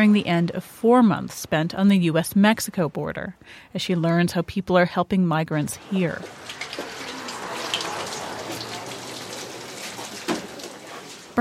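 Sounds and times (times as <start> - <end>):
speech: 0.0 - 6.8
women washing dishes with running water: 5.7 - 11.3.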